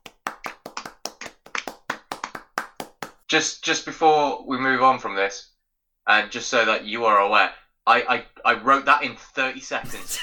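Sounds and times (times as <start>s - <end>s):
golf clap, light polite clapping: 0.0s - 3.2s
speech: 3.3s - 5.5s, 6.1s - 10.2s.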